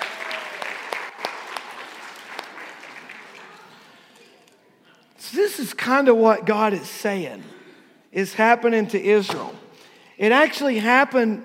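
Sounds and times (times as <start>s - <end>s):
applause from a small group: 0.0s - 4.2s
speech: 5.3s - 9.6s, 10.2s - 11.4s.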